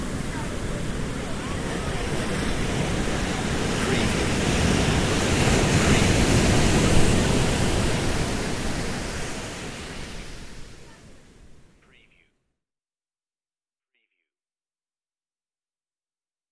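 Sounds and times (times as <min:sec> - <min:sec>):
ocean waves: 0:00.0 - 0:12.2.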